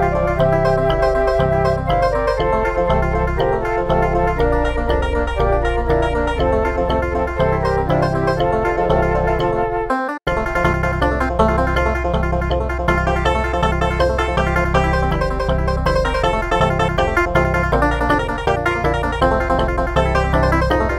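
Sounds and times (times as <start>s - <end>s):
traditional African-American folk flute: 0.0s - 10.2s
traditional African-American folk banjo: 0.0s - 20.9s.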